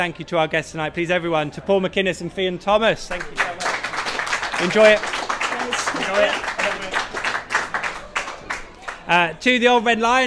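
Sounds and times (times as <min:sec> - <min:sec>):
speech: 0:00.0 - 0:03.6, 0:04.6 - 0:05.2, 0:05.9 - 0:06.9, 0:09.1 - 0:10.2
live audience applause: 0:03.1 - 0:09.1.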